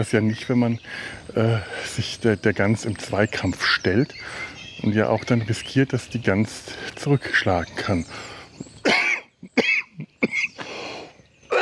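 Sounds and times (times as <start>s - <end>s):
speech: 0.0s - 9.0s
person coughing after choking on something: 8.8s - 10.6s.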